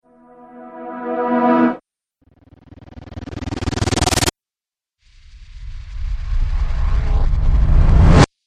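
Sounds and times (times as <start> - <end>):
cinematic riser: 0.2 - 1.8, 5.3 - 8.3.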